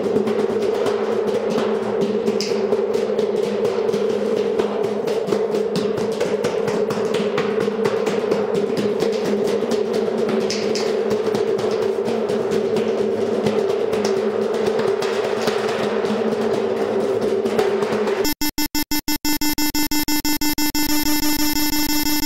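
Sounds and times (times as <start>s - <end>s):
drumming on satellite dishes: 0.0s - 22.2s
steady ringing hum: 18.2s - 22.2s.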